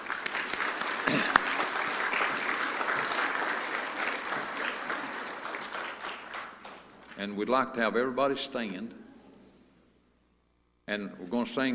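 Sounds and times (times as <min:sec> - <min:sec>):
audience applause: 0:00.0 - 0:07.2
speech: 0:07.2 - 0:09.0, 0:10.9 - 0:11.7.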